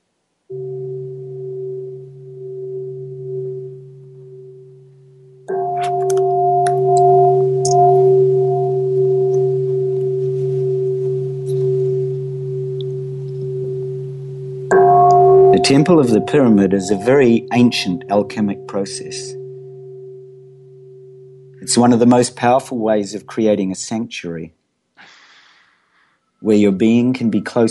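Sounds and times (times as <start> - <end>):
meditation tones: 0.5 - 23.5, 26.4 - 27.6
speech: 15.7 - 19.4, 21.7 - 24.6, 26.5 - 27.6.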